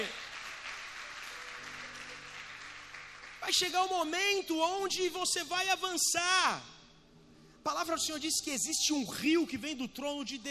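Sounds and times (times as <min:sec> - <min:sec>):
audience applauding: 0:00.0 - 0:03.9
speech: 0:03.5 - 0:06.8, 0:07.6 - 0:10.5.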